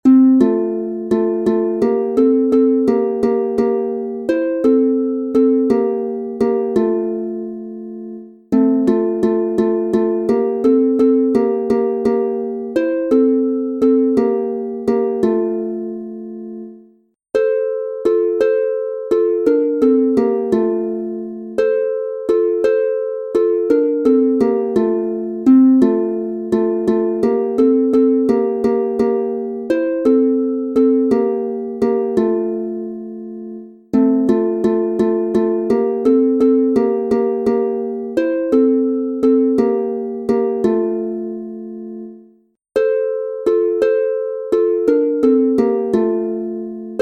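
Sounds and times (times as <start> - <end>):
two-voice instrumental harp in F major: 0.0 - 47.0.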